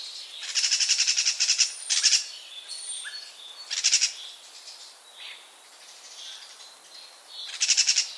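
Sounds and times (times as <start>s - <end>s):
common starling rattling calls: 0.4s - 2.3s, 3.7s - 4.2s, 7.5s - 8.1s.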